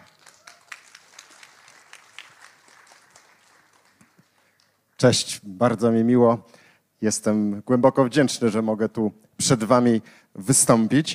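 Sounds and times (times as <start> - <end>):
audience applause: 0.0 - 4.8
speech: 5.0 - 11.1.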